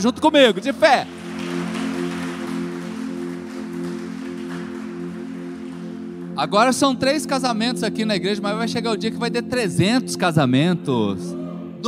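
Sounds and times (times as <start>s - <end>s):
speech: 0.0s - 1.2s, 6.4s - 11.8s
audience applauding: 0.0s - 6.4s.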